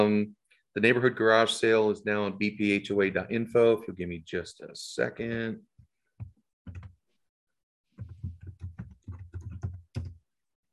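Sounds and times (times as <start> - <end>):
speech: 0.0 - 5.7
typing on a computer keyboard: 8.0 - 10.2.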